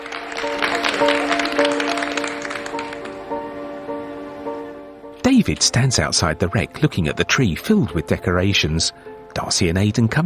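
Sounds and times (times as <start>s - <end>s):
crowd clapping: 0.0s - 4.3s
speech: 0.4s - 1.4s, 5.4s - 10.2s.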